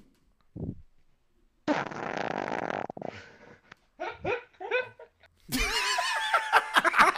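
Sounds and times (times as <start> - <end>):
recorded fart played back: 1.6 - 3.8
people snickering and laughing: 4.0 - 7.1.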